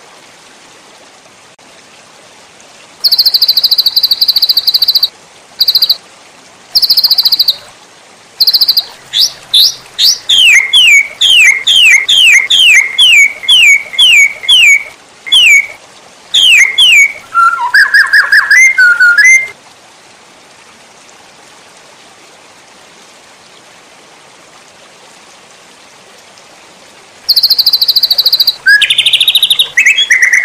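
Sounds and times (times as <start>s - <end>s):
White-rumped shama singing: 3.0s - 6.0s, 6.8s - 7.6s, 8.4s - 15.8s, 16.4s - 19.5s, 27.3s - 30.4s.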